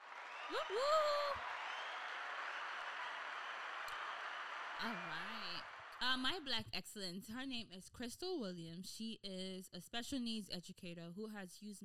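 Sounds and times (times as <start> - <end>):
person whooping: 0.0 - 5.7
crowd applause: 0.0 - 6.3
speech: 0.5 - 1.6, 4.8 - 11.8.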